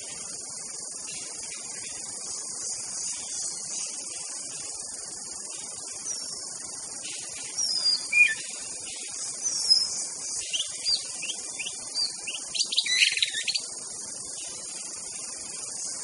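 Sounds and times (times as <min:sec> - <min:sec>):
White-rumped shama whistled song: 0:07.0 - 0:13.7.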